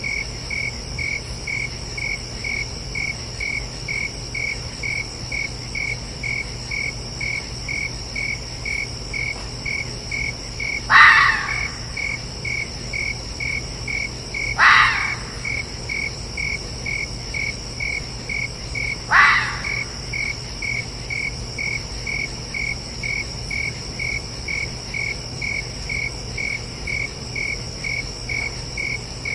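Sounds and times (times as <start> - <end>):
crickets chirping: 0.0 - 29.3
red fox barking: 10.8 - 12.2, 14.4 - 15.7, 19.0 - 20.1.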